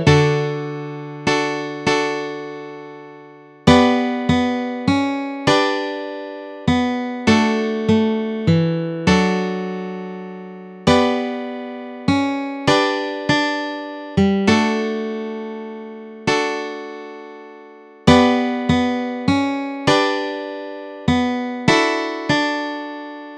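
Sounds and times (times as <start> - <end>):
guitar melody and chords: 0.0 - 23.3.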